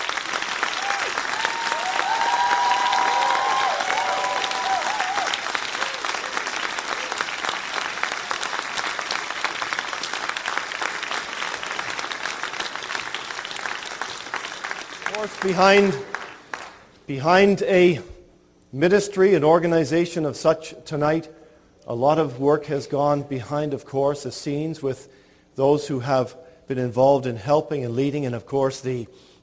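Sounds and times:
large audience applauding: 0:00.0 - 0:16.9
whistle or cheer: 0:00.7 - 0:06.1
speech: 0:15.4 - 0:16.1, 0:17.1 - 0:18.1, 0:18.7 - 0:29.3.

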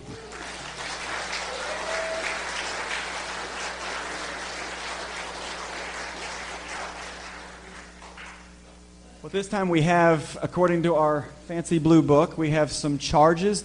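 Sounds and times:
audience applause: 0:00.0 - 0:08.6
speech: 0:09.3 - 0:13.6.

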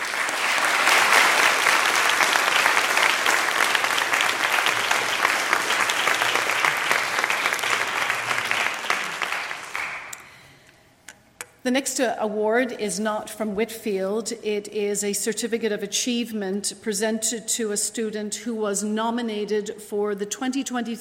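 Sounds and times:
audience applause: 0:00.0 - 0:10.2
speech: 0:11.7 - 0:20.9.

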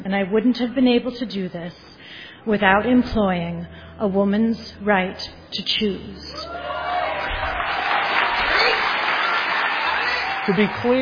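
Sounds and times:
speech: 0:00.1 - 0:06.6, 0:10.4 - 0:11.0
audience applauding: 0:06.5 - 0:11.0.

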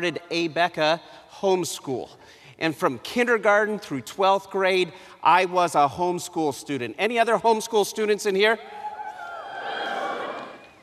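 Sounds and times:
speech: 0:00.0 - 0:08.8
audience cheering: 0:08.8 - 0:10.8.

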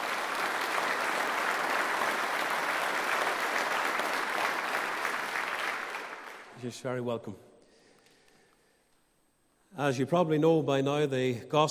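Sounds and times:
applause in the church at Hebron, Ballymoney, Northern Ireland: 0:00.0 - 0:06.7
speech: 0:06.6 - 0:07.5, 0:09.8 - 0:11.6.

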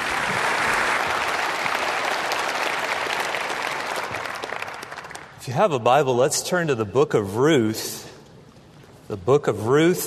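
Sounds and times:
audience at Bob Jones University applauding a guest speaker: 0:00.0 - 0:05.4
speech: 0:05.5 - 0:08.1, 0:09.1 - 0:10.0.

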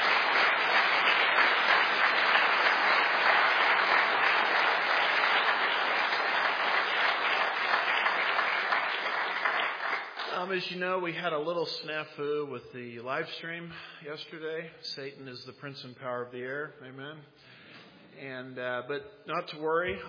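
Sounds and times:
audience applause: 0:00.0 - 0:10.5
speech: 0:10.5 - 0:17.5, 0:18.2 - 0:20.0.

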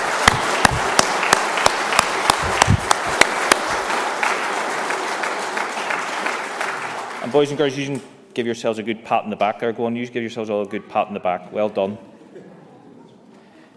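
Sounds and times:
crowd applauding: 0:00.0 - 0:07.6
speech: 0:07.4 - 0:12.1.

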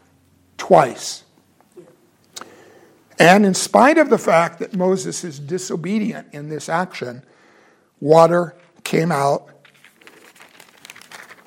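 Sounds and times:
speech: 0:00.7 - 0:01.2, 0:03.2 - 0:07.4, 0:08.0 - 0:09.6
paper page turning: 0:09.6 - 0:11.4.

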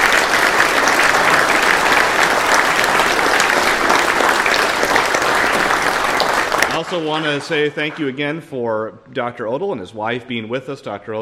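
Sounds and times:
audience applauding: 0:00.0 - 0:08.2
speech: 0:06.9 - 0:11.2.

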